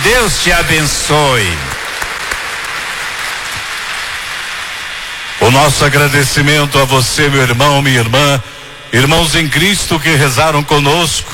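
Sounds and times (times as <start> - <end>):
applause for Our Lady: 0.0 - 6.4
speech: 0.2 - 1.7, 5.4 - 11.3.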